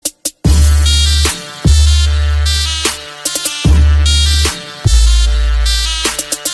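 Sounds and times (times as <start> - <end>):
Turkish trap music: 0.0 - 6.5.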